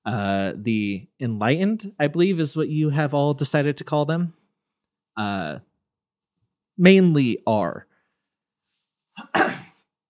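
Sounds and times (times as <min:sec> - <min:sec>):
speech: 0:00.0 - 0:04.4, 0:05.2 - 0:05.7, 0:06.8 - 0:07.9
person coughing: 0:09.2 - 0:09.9.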